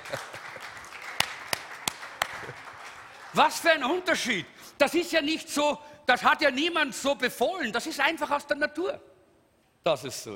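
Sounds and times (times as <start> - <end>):
hand claps: 0.0 - 3.4
hiss: 0.0 - 10.3
speech: 0.1 - 0.4, 3.4 - 9.1, 9.8 - 10.3.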